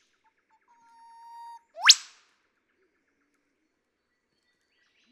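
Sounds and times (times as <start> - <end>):
Eastern whipbird whip-crack song: 0.7 - 2.2.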